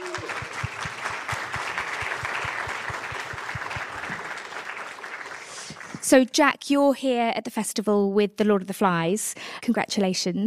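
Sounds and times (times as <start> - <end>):
one sharper evenly paced clapper: 0.0 - 6.0
audience applause welcoming a guest at a festival: 0.0 - 6.1
speech: 6.1 - 10.4.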